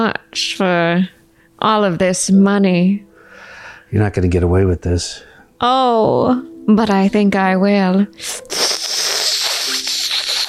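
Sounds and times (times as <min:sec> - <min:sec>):
speech: 0:00.0 - 0:03.1, 0:03.9 - 0:08.7
long slurp of tea: 0:08.2 - 0:10.4.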